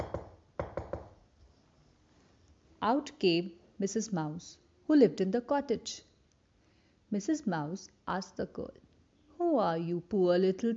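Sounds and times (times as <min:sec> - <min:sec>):
knocking on a wooden door: 0:00.0 - 0:01.2
speech: 0:02.8 - 0:06.1, 0:07.1 - 0:08.8, 0:09.6 - 0:10.7.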